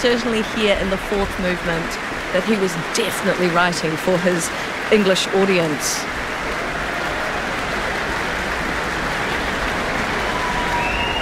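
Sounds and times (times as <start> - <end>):
speech: 0.0 - 6.2
audience applause: 0.0 - 11.2
cheers: 2.6 - 11.2
whistles: 10.2 - 11.2.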